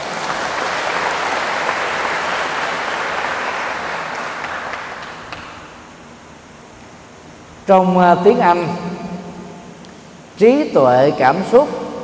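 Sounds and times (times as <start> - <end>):
audience applause: 0.0 - 5.6
speech: 7.7 - 9.0, 10.4 - 11.8.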